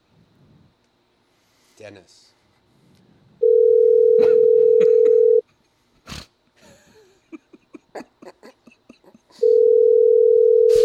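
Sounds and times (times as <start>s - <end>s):
speech: 1.8s - 2.4s
telephone ringback tone: 3.4s - 5.4s, 9.4s - 10.8s.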